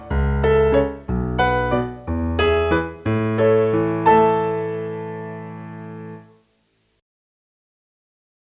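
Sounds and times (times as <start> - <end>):
musical accompaniment in B minor and F minor: 0.0 - 6.4.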